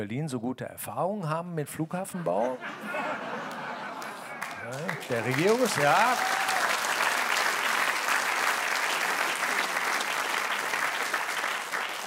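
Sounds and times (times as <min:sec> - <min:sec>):
speech: 0:00.0 - 0:03.2, 0:04.7 - 0:06.5
laughter: 0:02.0 - 0:06.6
audience applause: 0:03.2 - 0:12.0.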